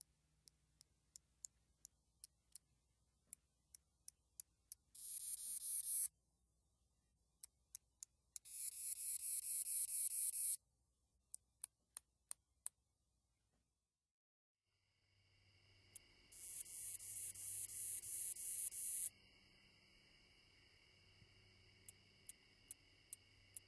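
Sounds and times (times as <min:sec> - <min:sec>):
Northern Bush Katydid song ticks: 0:00.0 - 0:06.1, 0:07.4 - 0:10.6, 0:11.3 - 0:12.8, 0:15.8 - 0:23.6.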